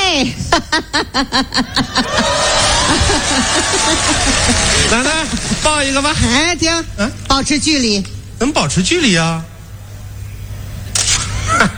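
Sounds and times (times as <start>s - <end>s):
low hum: 0.0s - 11.7s
speech: 0.2s - 2.3s, 4.9s - 9.5s
laughter: 0.6s - 6.0s
camera shutter click taking a photo: 10.9s - 11.3s.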